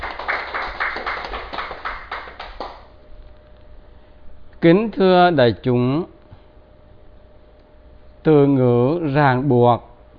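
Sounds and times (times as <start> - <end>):
audience clapping at a Buddhist dharma talk: 0.0 - 2.9
speech: 4.6 - 6.1, 8.2 - 9.9.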